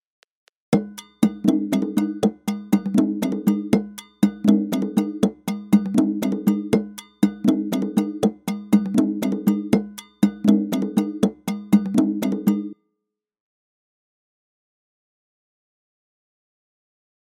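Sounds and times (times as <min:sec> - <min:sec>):
African music at 120 bpm: 0:00.8 - 0:12.8.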